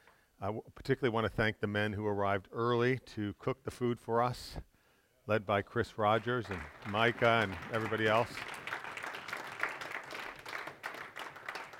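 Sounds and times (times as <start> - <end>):
speech: 0.4 - 4.7, 5.3 - 8.6
audience clapping: 6.1 - 11.7.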